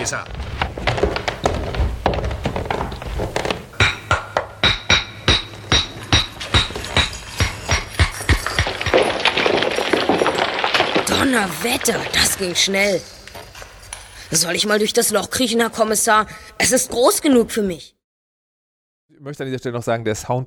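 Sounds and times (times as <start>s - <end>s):
speech: 0.0s - 1.0s, 11.3s - 13.2s, 14.3s - 18.0s, 19.2s - 20.4s
scraping and clatter: 0.0s - 3.8s, 5.4s - 14.3s
wall being smashed in with hard hollow thuds: 0.0s - 12.3s.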